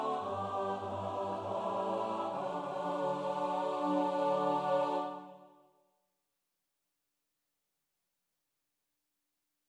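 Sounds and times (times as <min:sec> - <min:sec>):
SATB four-part choir singing: 0:00.0 - 0:05.6.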